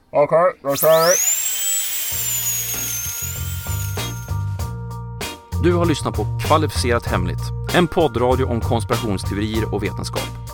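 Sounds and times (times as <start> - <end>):
speech: 0.1 - 1.4, 5.6 - 10.4
high-pitched dental drill whining on a tooth: 0.7 - 4.6
low intermittent grinding buzz: 0.7 - 4.6.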